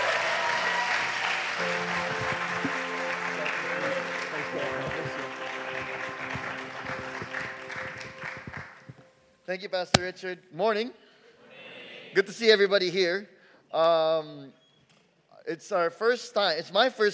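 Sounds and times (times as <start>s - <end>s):
church congregation applauding to welcome a visiting pastor: 0.0s - 8.6s
speech: 9.5s - 11.0s, 12.1s - 14.6s, 15.4s - 17.1s.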